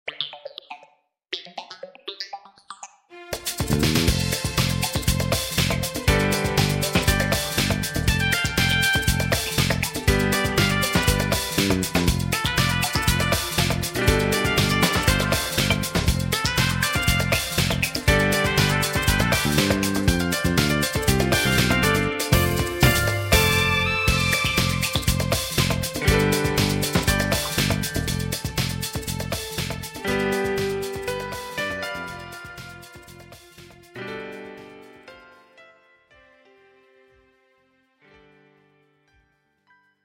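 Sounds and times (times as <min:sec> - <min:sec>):
samba music: 0:03.2 - 0:34.0.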